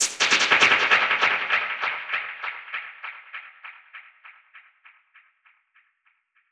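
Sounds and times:
dub percussion hit: 0:00.0 - 0:01.4.

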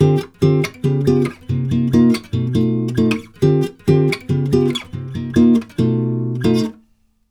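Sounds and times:
Brazilian bossa nova chords: 0:00.0 - 0:06.7.

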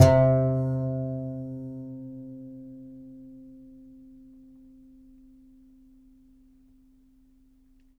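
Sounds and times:
contrabass balalaika plucked strings: 0:00.0 - 0:02.6.

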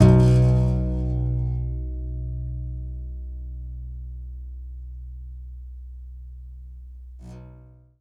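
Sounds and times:
contrabass balalaika plucked: 0:00.0 - 0:04.3.

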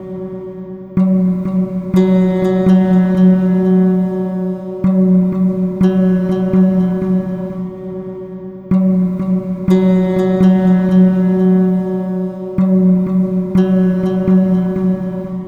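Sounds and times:
ambient melody: 0:01.2 - 0:08.1, 0:08.9 - 0:15.4.

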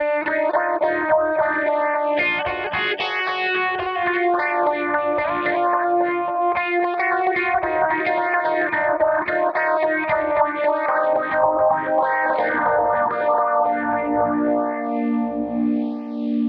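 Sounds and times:
synth lead: 0:00.0 - 0:16.4.

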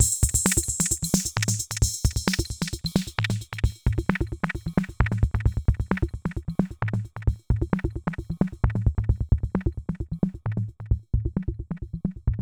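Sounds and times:
processed percussion: 0:00.0 - 0:12.3.

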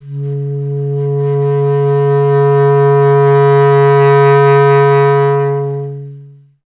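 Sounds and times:
bass clarinet: 0:00.0 - 0:06.6.

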